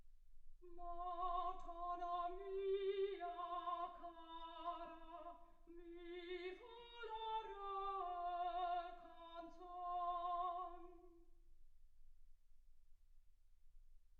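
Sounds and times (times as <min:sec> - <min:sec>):
soprano singing: 0:00.6 - 0:11.2.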